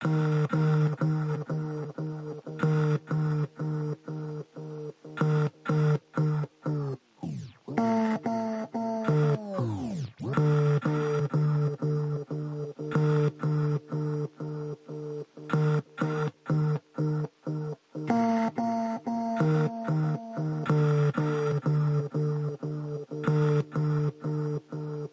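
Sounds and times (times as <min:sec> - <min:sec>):
keyboard chords: 0:00.0 - 0:25.1
synth pulses: 0:00.0 - 0:25.1.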